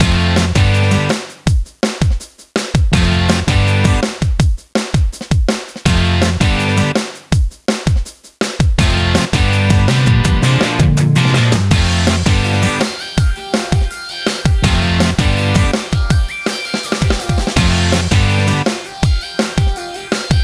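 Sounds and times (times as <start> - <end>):
pop rock loop: 0.0 - 20.4.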